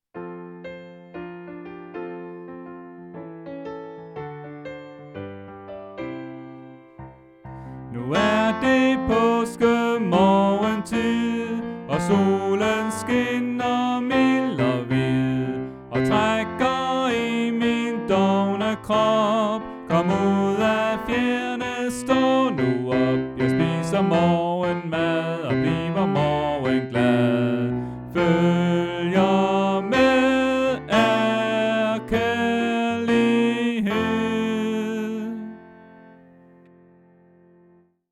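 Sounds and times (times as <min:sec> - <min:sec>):
tenor singing: 0:07.9 - 0:35.6.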